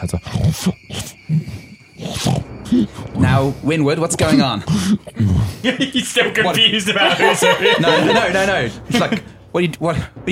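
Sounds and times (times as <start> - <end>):
creature grunting and snorting growl: 0.0 - 3.6, 4.2 - 5.7
speech: 0.0 - 10.3
laughter: 5.4 - 9.4.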